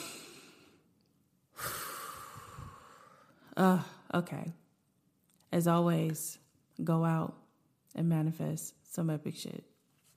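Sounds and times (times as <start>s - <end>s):
deep breath in: 0.0s - 0.8s, 1.5s - 3.5s
speech: 3.6s - 4.6s, 5.5s - 9.7s.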